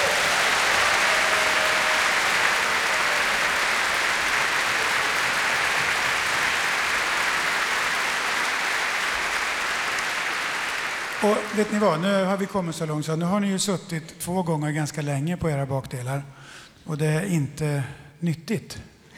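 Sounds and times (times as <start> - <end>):
large audience applause: 0.0 - 12.6
speech: 11.2 - 18.9.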